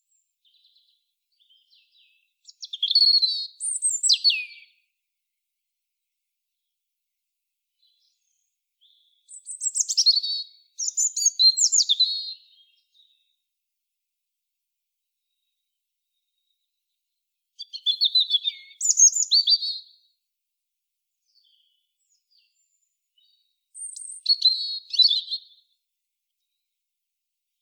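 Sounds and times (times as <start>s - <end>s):
European robin singing: 0.0s - 4.9s, 7.8s - 13.4s, 17.6s - 20.0s, 21.2s - 25.8s.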